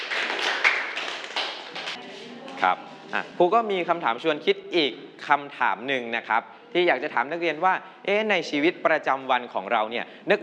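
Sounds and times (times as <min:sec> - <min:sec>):
group of students clapping: 0:00.0 - 0:02.0
speech: 0:02.6 - 0:10.4.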